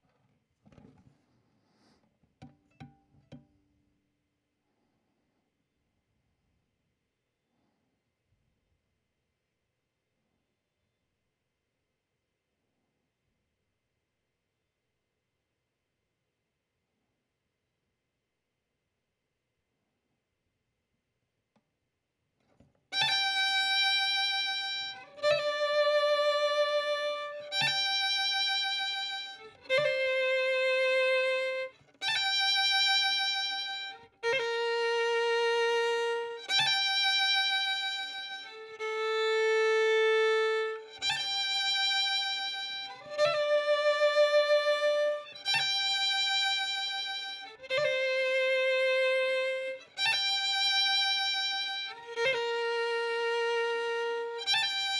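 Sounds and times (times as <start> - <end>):
violin: 22.9 - 54.9.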